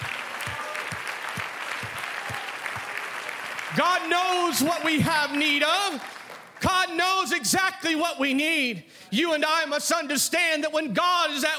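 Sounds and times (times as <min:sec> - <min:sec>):
audience clapping hands: 0:00.0 - 0:07.0
speech: 0:03.8 - 0:11.5.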